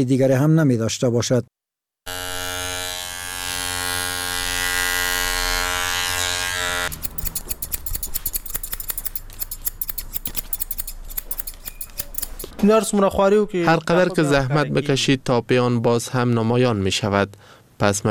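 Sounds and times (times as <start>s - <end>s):
speech: 0.0s - 2.2s, 12.6s - 18.0s
electric clipper buzzing: 2.1s - 12.6s
barber cutting hair with scissors: 6.9s - 12.6s.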